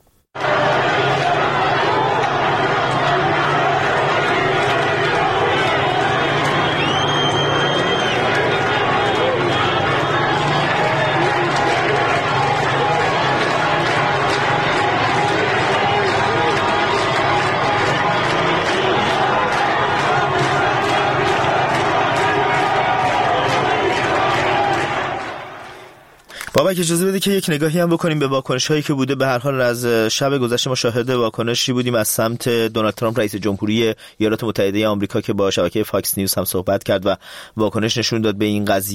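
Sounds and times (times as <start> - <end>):
street protest crowd shouting and chanting in Isfahan, Iran: 0.4 - 26.2
speech: 26.8 - 38.9.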